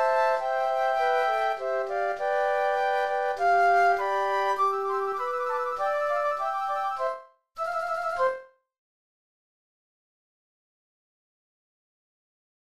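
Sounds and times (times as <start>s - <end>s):
flutes: 0.0s - 8.6s.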